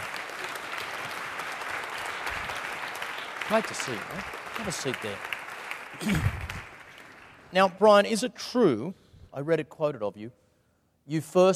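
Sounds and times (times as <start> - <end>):
audience applause: 0.0 - 7.5
speech: 3.5 - 5.3, 5.9 - 6.4, 7.5 - 10.4, 11.1 - 11.5.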